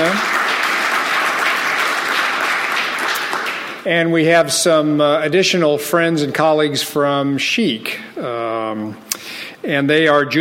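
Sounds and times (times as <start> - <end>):
crowd applause: 0.0 - 3.8
speech: 3.9 - 10.3.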